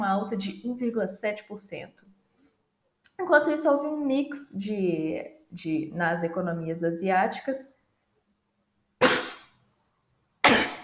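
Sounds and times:
speech: 0.0s - 2.1s, 3.2s - 7.8s
person sneezing: 9.0s - 9.5s, 10.4s - 10.8s.

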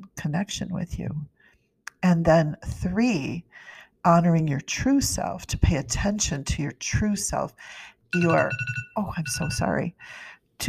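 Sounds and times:
speech: 0.2s - 1.4s, 2.0s - 10.6s
alarm ringing: 8.2s - 9.7s.

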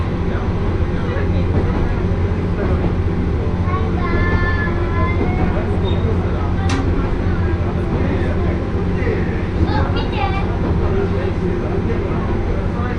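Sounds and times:
one-car railbus engine rumble on the Akechi Railway: 0.0s - 12.9s
overlapping chatter of passengers in a crowded railbus: 0.0s - 12.9s
children's voices: 3.6s - 7.4s, 9.6s - 10.7s.

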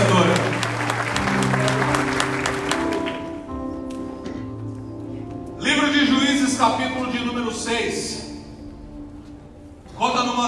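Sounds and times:
audience applauding: 0.0s - 3.5s
sustained keyboard chords: 0.0s - 10.4s.

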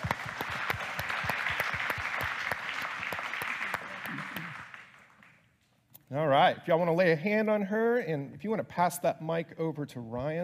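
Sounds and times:
audience applause: 0.0s - 5.4s
speech: 6.1s - 10.4s.

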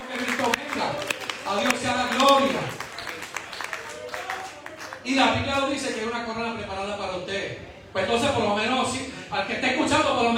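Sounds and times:
crowd clapping: 0.0s - 6.2s
speech: 5.1s - 10.3s.

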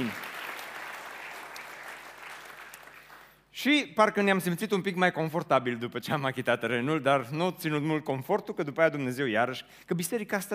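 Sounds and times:
applause: 0.0s - 3.5s
speech: 3.6s - 10.5s.

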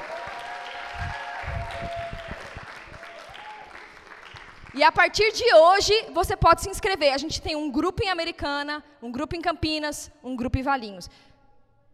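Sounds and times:
audience applause: 0.0s - 4.8s
speech: 4.8s - 11.3s.

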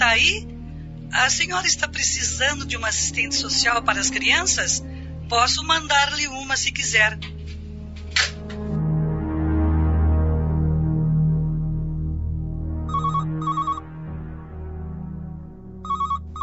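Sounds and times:
steady low hum: 0.0s - 16.4s
speech: 0.2s - 0.5s, 1.1s - 7.4s
electronic telephone ringing: 12.9s - 13.8s, 15.8s - 16.4s.

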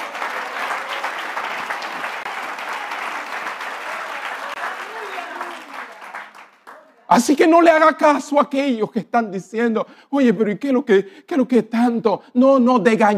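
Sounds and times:
audience applause: 0.0s - 7.0s
speech: 7.1s - 13.1s.

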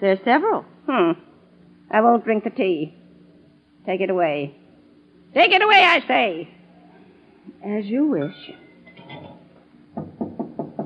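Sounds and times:
speech: 0.0s - 1.3s, 1.9s - 3.0s, 3.9s - 4.6s, 5.3s - 6.6s, 7.5s - 8.6s
tapping on a door: 10.0s - 10.8s.

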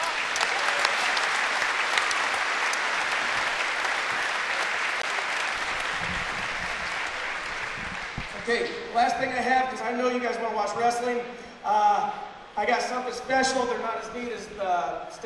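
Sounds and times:
audience applause: 0.0s - 9.1s
speech: 8.5s - 15.2s.

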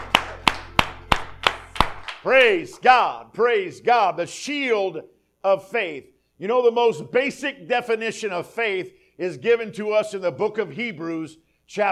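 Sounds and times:
audience clapping hands: 0.0s - 2.7s
speech: 2.2s - 11.9s.

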